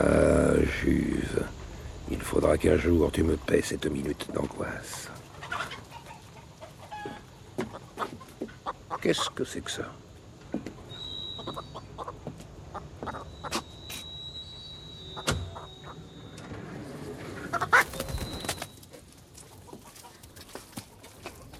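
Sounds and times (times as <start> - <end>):
speech: 0.0 - 5.2, 9.0 - 10.0
black hens clucking and squawking in a slatted crate: 3.3 - 9.8, 10.6 - 13.7, 16.9 - 21.5
thin high squeals: 13.4 - 19.0
wings flapping and clatter: 17.5 - 21.5.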